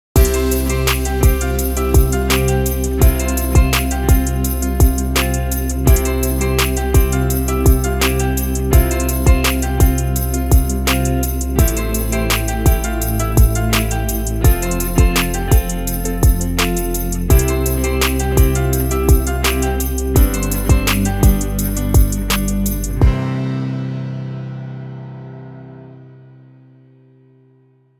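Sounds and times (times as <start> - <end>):
instrumental music: 0.2 - 27.2.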